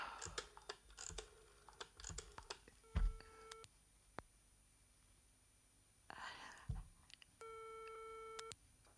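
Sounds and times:
sharp clicks: 0.2s - 2.6s
telephone busy tone: 2.8s - 3.6s, 7.4s - 8.5s
soft breathy whispering: 6.1s - 6.8s.

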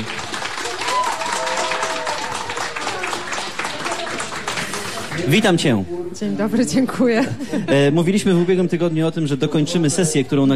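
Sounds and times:
studio audience applauding a musician guest at a radio station: 0.0s - 5.8s
speech: 5.2s - 10.5s.

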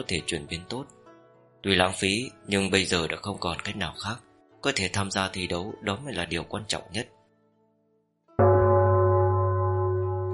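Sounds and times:
speech: 0.0s - 1.0s, 1.6s - 7.2s
ancient bell ringing and echoing: 8.4s - 10.3s.

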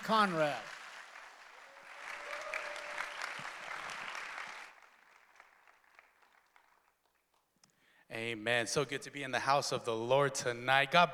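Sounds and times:
audience applauding a guest speaker: 0.0s - 7.4s
speech: 0.1s - 0.7s, 8.1s - 11.1s.

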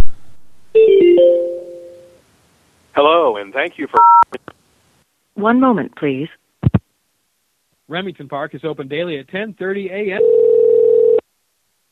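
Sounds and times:
telephone voicemail tones: 0.8s - 2.1s, 10.2s - 11.2s
speech: 3.5s - 4.3s, 5.4s - 6.4s, 7.9s - 10.4s.

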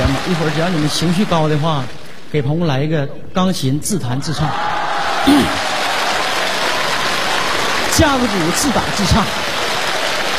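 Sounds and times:
audience applauding at a live comedy show in Beijing: 0.0s - 2.1s, 4.6s - 10.3s
speech: 0.3s - 5.7s, 8.0s - 9.6s.

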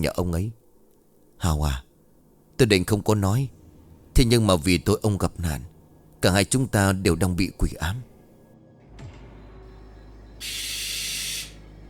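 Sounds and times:
speech: 0.0s - 0.6s, 1.4s - 1.9s, 2.6s - 3.6s, 4.2s - 8.1s, 10.4s - 10.6s
barn owl screeching: 10.4s - 11.7s.

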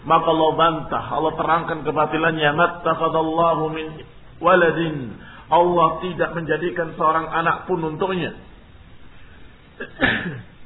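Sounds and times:
speech: 0.0s - 8.5s, 9.8s - 10.4s
sneeze: 9.8s - 10.5s.

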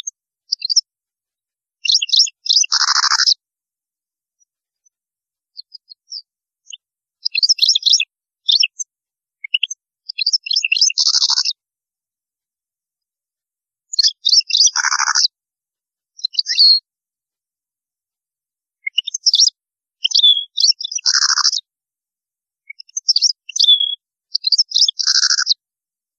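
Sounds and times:
European goldfinch singing: 0.5s - 0.8s, 1.8s - 3.4s, 5.6s - 8.8s, 9.4s - 11.6s, 13.9s - 15.3s, 16.2s - 16.8s, 18.9s - 21.6s, 22.7s - 25.6s.

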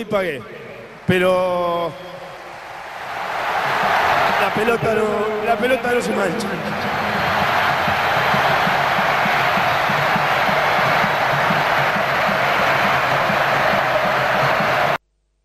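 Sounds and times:
speech: 0.0s - 2.2s, 4.4s - 6.9s
audience applauding: 2.7s - 15.0s.

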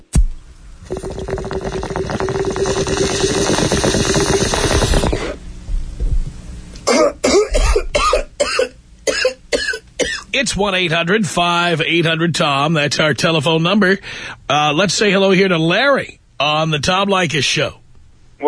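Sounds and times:
bong hit bubbling gurgle: 0.8s - 5.4s
person coughing harshly after a bong hit: 6.8s - 10.3s
speech: 10.4s - 17.8s.

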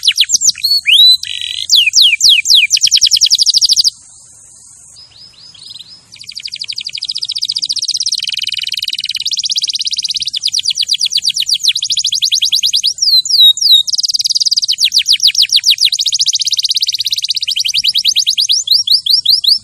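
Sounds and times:
canary singing trills: 0.0s - 19.6s.

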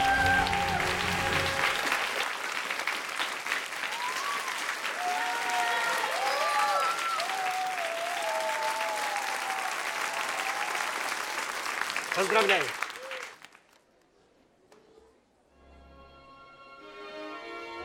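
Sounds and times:
people cheering: 0.0s - 13.5s
crowd applauding the winners of a competition: 0.0s - 13.9s
speech: 12.3s - 12.8s.

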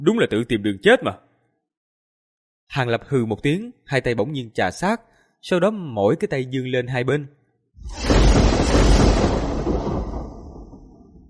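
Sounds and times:
speech: 0.0s - 1.2s, 2.7s - 8.8s
thunderclap sound effect: 7.8s - 11.2s.

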